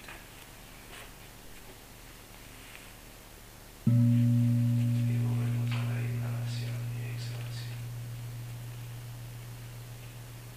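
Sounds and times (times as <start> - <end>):
gong being struck: 3.9 - 10.5.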